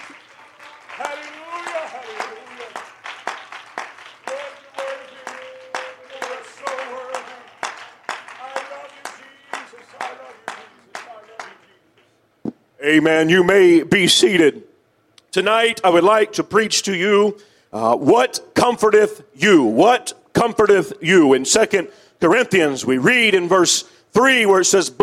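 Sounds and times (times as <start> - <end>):
audience clapping hands in praise: 0.0 - 12.2
speech: 12.8 - 14.6, 15.4 - 25.0.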